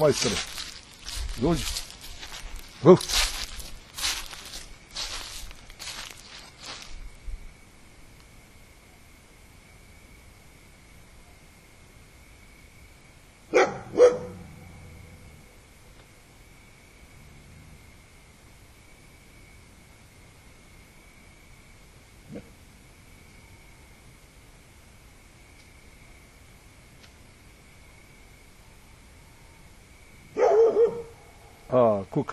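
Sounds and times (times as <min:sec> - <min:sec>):
speech: 0:00.0 - 0:00.7, 0:01.4 - 0:01.9, 0:02.8 - 0:03.3, 0:31.7 - 0:32.3
dog barking: 0:13.5 - 0:14.6, 0:30.3 - 0:31.5
dog yelping: 0:30.4 - 0:31.3.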